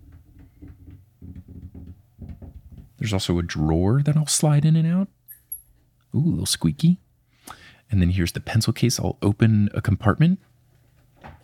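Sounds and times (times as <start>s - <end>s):
fingertips tapping on a glass desk: 0.0s - 3.0s
speech: 3.0s - 5.2s, 6.1s - 7.0s, 7.9s - 10.5s.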